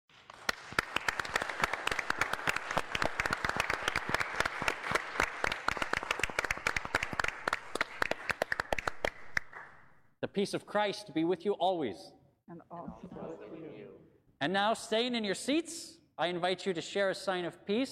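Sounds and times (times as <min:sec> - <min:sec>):
audience applauding new members in a resonant room: 0:00.1 - 0:09.9
speech: 0:10.4 - 0:12.2, 0:14.4 - 0:17.9.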